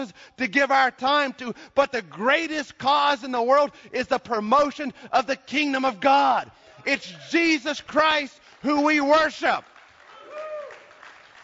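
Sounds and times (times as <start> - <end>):
speech: 0.0 - 9.7
audience clapping: 8.0 - 11.4
high whistle or whoop: 10.1 - 10.9.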